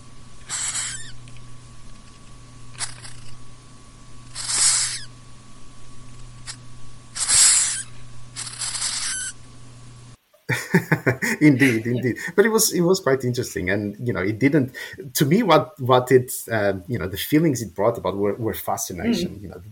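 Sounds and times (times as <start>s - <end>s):
faint steady hum: 0.0s - 19.6s
hissing cockroach hissing: 0.4s - 1.2s, 2.7s - 3.4s, 4.2s - 5.2s, 6.4s - 9.5s
laughter: 10.5s - 12.5s, 19.0s - 19.4s
speech: 10.6s - 19.6s.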